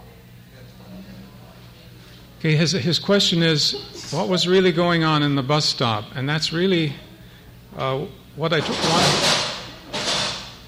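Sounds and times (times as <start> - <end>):
speech: 2.4 - 7.1, 7.8 - 9.2
chairs falling down: 8.6 - 10.6.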